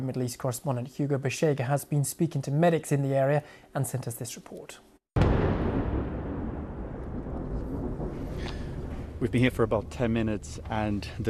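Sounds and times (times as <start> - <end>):
speech: 0.0 - 4.9, 9.2 - 11.2
Israeli airstrike explosion in the Nabatea district: 5.2 - 11.2.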